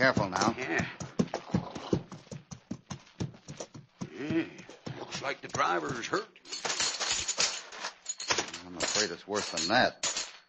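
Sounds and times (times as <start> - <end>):
speech: 0.0 - 1.0, 5.5 - 6.3, 9.0 - 10.0
stagecoach horses' hooves clip-clopping: 0.0 - 6.3.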